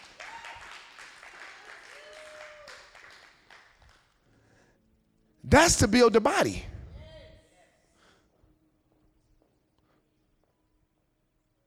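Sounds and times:
crowd applauding: 0.0s - 3.8s, 5.5s - 6.6s
speech: 5.5s - 6.7s.

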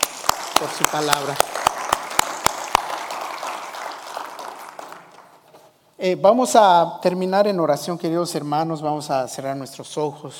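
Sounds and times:
audience applause: 0.0s - 5.4s
speech: 0.6s - 1.6s, 6.0s - 10.3s.

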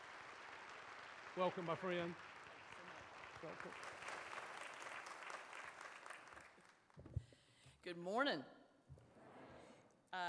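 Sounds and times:
congregation applauding to welcome a guest speaker: 0.0s - 7.0s
speech: 1.4s - 2.3s, 3.4s - 4.0s, 7.8s - 8.6s.

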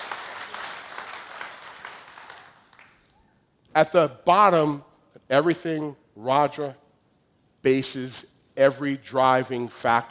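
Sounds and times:
audience clapping: 0.0s - 3.2s
speech: 3.8s - 6.8s, 7.6s - 10.1s.

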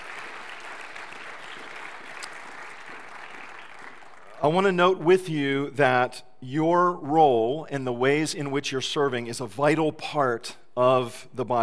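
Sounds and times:
audience applause: 0.0s - 4.4s
speech: 4.4s - 11.6s.

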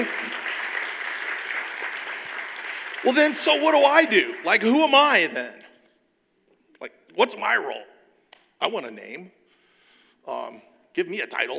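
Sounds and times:
audience round of applause: 0.0s - 5.3s
speech: 3.0s - 5.6s, 6.8s - 7.9s, 8.6s - 9.4s, 10.2s - 11.5s.

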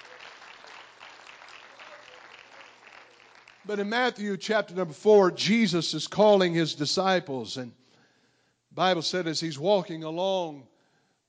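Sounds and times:
audience clapping hands: 0.0s - 4.2s
speech: 3.6s - 7.8s, 8.8s - 10.7s.

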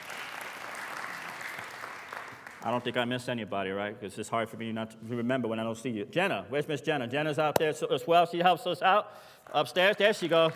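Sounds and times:
audience clapping: 0.0s - 3.0s, 9.5s - 10.5s
speech: 2.6s - 10.5s.

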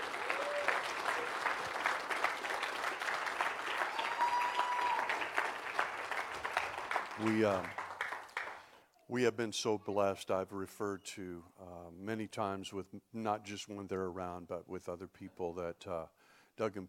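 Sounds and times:
congregation clapping during a church service: 0.0s - 8.8s
speech: 7.2s - 7.8s, 9.1s - 16.8s.

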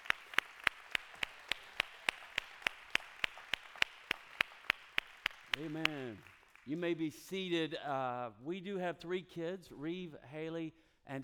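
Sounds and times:
audience applause: 0.0s - 6.8s
speech: 5.6s - 11.2s.

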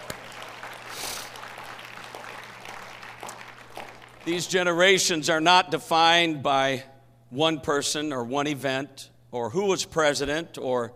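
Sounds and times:
audience clapping: 0.0s - 4.8s
speech: 4.2s - 10.9s.

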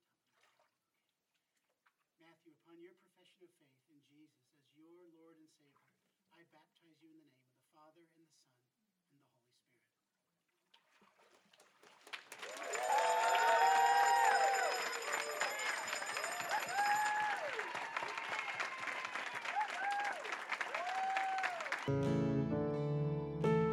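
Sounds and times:
speech: 2.4s - 9.7s
audience applauding: 11.6s - 22.2s
whoops and cheers: 12.4s - 21.9s
organ or keyboard chords: 21.8s - 23.7s.

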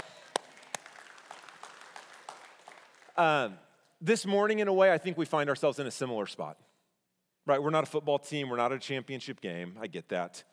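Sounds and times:
audience applause: 0.0s - 3.3s
speech: 3.2s - 6.7s, 7.4s - 10.5s.

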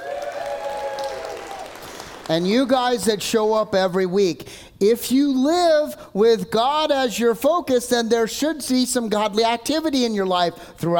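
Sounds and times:
crowd whooping: 0.0s - 1.8s
crowd applauding: 0.0s - 2.6s
speech: 2.3s - 10.9s.

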